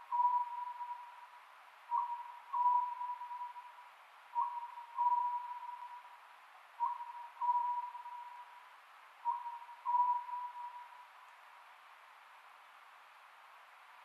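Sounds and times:
Oriental scops owl hooting: 0.0 - 1.3, 1.9 - 3.8, 4.4 - 6.1, 6.8 - 8.5, 9.2 - 11.0.

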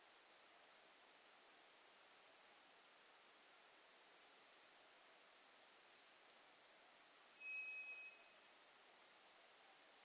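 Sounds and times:
White's thrush thin whistle: 7.4 - 8.4.

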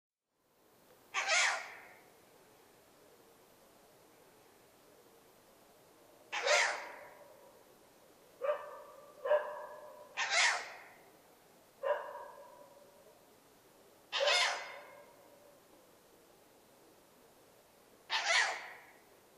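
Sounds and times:
owl giving harsh hissing screeches: 1.1 - 2.0, 6.3 - 7.2, 10.1 - 11.0, 14.1 - 15.1, 18.1 - 19.0.

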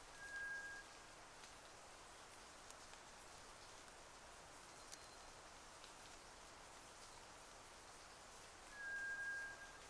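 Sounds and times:
White's thrush thin level whistles: 0.2 - 0.9, 8.7 - 9.8.

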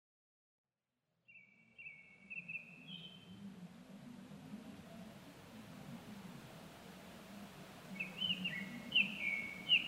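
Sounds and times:
Japanese thrush whistled song: 1.3 - 3.3, 7.9 - 9.8.

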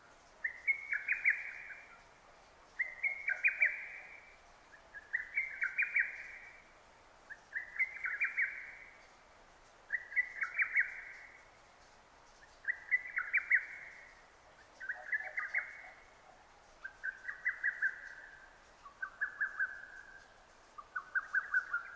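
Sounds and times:
lesser cuckoo calling: 0.4 - 2.0, 2.8 - 4.4, 5.0 - 6.6, 9.9 - 11.4, 12.4 - 16.1, 16.8 - 21.9.

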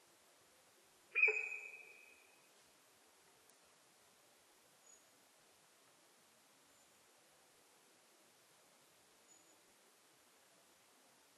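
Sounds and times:
Sika deer whistle: 1.2 - 2.0.

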